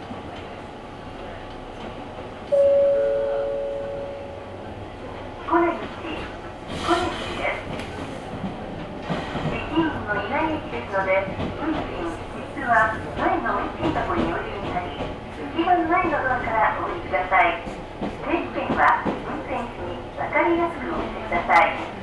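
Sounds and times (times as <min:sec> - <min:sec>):
Ohmi Railway train rumble: 0:00.0 - 0:22.0
two-note tone: 0:02.5 - 0:04.5.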